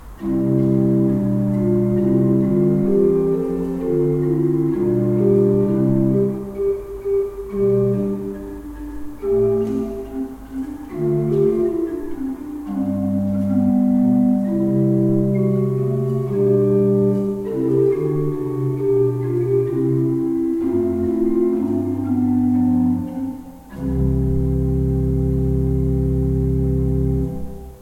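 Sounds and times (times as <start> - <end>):
pipe organs: 0.0 - 27.8.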